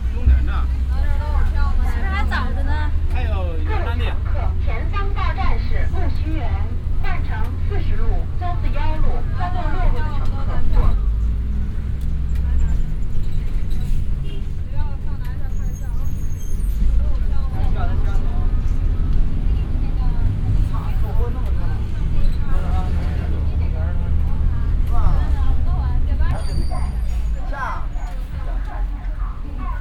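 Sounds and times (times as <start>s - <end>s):
bus journey in Beijing: 0.0s - 29.7s.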